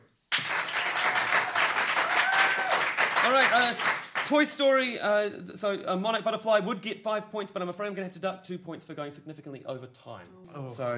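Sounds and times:
crowd applauding: 0.3s - 4.4s
speech: 3.3s - 10.9s.

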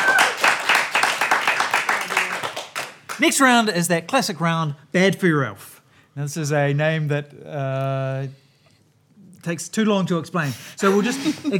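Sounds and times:
crowd applauding: 0.0s - 3.3s
speech: 3.2s - 8.4s, 9.4s - 11.5s.

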